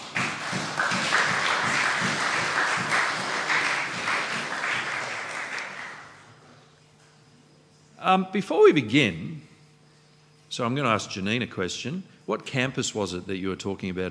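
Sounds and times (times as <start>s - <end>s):
crowd applause: 0.0s - 6.3s
speech: 8.1s - 9.4s, 10.5s - 14.0s.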